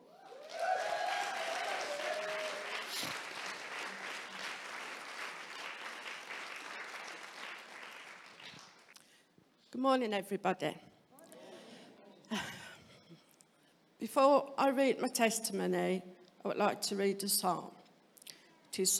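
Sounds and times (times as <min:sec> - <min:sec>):
Rock Church round of applause: 0:00.0 - 0:09.0
speech: 0:09.8 - 0:10.9, 0:14.1 - 0:17.8, 0:18.8 - 0:18.9.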